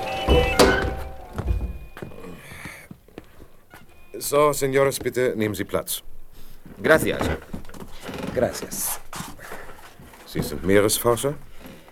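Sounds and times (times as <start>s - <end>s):
window being shut: 0.0s - 2.0s
speech: 4.3s - 6.1s, 6.8s - 7.6s, 8.4s - 9.0s, 10.3s - 11.5s.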